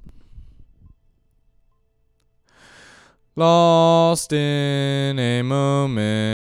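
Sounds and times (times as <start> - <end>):
male ambient lead vocal: 3.4 - 6.4.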